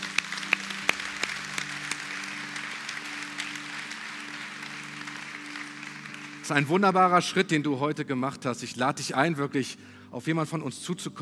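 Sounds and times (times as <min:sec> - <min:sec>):
audience applause: 0:00.0 - 0:07.4
speech: 0:06.5 - 0:11.2.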